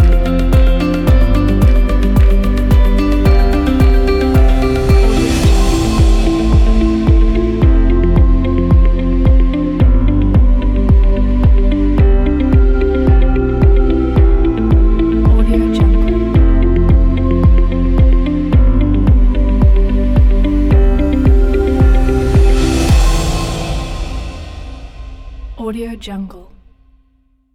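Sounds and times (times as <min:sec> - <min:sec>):
summer ambient upbeat pop music: 0:00.0 - 0:26.2.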